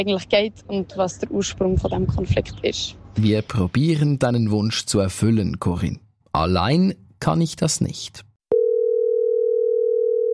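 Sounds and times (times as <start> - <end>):
speech: 0.0 - 8.3
telephone dial tone: 8.5 - 10.3.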